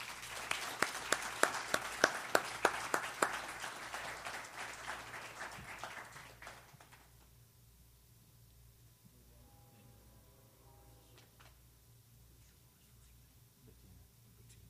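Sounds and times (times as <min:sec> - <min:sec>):
church audience clapping to welcome a pastor: 0:00.0 - 0:07.3.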